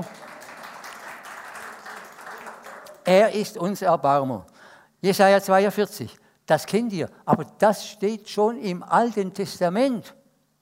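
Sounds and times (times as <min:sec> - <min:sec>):
congregation applause during a church service: 0:00.0 - 0:03.3
speech: 0:03.1 - 0:10.2.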